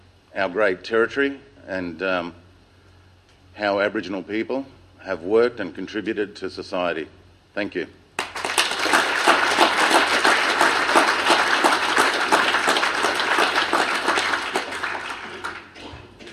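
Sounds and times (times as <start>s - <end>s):
speech: 0.4s - 2.4s, 3.6s - 8.0s
audience applause: 8.2s - 16.3s.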